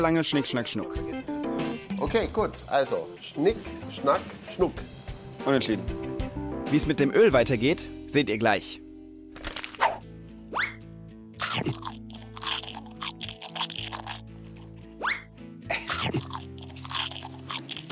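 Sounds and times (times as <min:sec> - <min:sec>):
speech: 0:00.0 - 0:08.8
quiet music: 0:00.0 - 0:17.8
crunchy potato chips being eaten: 0:09.4 - 0:09.9, 0:11.4 - 0:15.0, 0:16.0 - 0:17.8
soft chewing: 0:11.4 - 0:15.0, 0:15.9 - 0:17.8.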